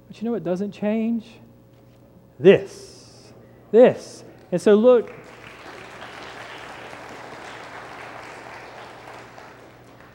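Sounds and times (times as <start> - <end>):
speech: 0.1 - 1.4, 2.4 - 3.0, 3.7 - 5.2
audience clapping during a sermon: 4.4 - 10.1.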